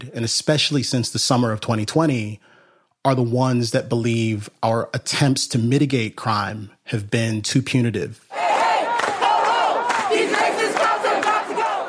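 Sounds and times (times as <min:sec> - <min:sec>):
speech: 0:00.1 - 0:08.2
protest crowd yelling in the street outside the state fair in St. Paul: 0:08.3 - 0:11.8.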